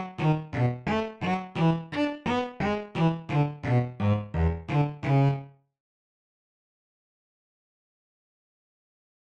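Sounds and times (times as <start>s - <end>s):
bass: 0.0s - 5.5s.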